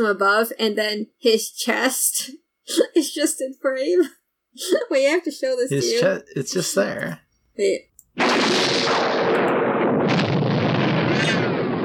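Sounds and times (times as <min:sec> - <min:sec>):
speech: 0:00.0 - 0:09.6
Hanna-Barbera cartoon lightning sound effect: 0:08.2 - 0:11.8.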